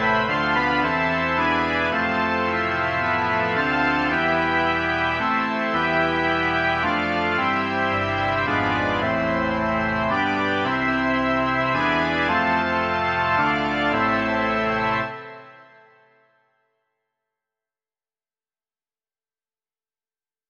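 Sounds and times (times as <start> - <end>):
organ: 0.0 - 16.1.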